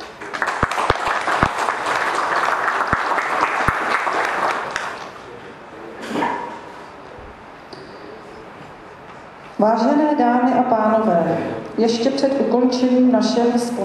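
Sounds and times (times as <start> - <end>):
audience applause: 0.2 - 5.2
speech: 9.6 - 13.8.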